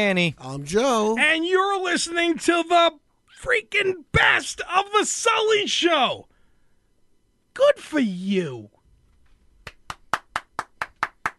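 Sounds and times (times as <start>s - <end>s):
speech: 0.0s - 6.3s, 7.6s - 8.8s
weak crowd applause: 9.7s - 11.3s.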